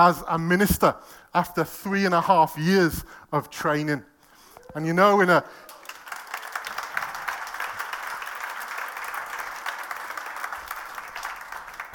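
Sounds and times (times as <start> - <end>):
speech: 0.0 - 4.1, 4.7 - 5.6
audience applause: 5.5 - 11.9.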